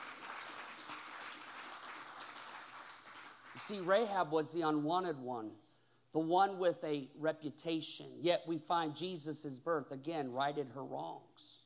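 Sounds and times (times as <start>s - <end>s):
audience clapping: 0.0s - 4.2s
speech: 3.6s - 11.5s.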